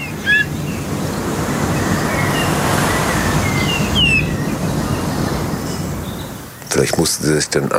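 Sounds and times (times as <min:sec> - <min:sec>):
bullfinch short thin whistled calls: 0:00.0 - 0:00.8, 0:02.1 - 0:05.0
loud steady roar of wind: 0:00.0 - 0:07.7
speech: 0:06.8 - 0:07.7.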